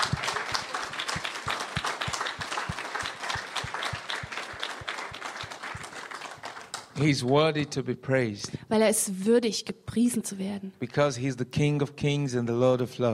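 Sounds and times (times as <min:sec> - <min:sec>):
audience applause: 0:00.0 - 0:07.4
speech: 0:07.0 - 0:13.1.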